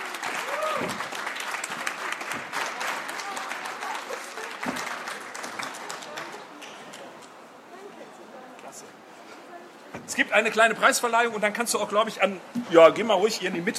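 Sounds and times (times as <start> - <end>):
audience applause: 0.0 - 7.0
speech: 10.2 - 13.7.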